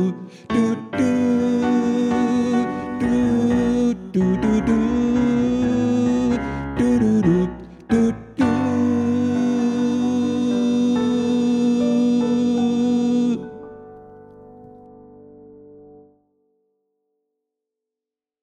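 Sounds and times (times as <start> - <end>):
tenor singing: 0.0 - 13.7.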